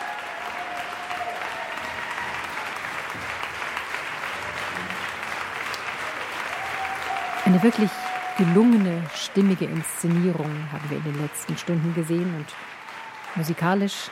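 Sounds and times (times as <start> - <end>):
audience applause for orchestra: 0.0 - 14.1
speech: 7.5 - 12.7, 13.3 - 14.1.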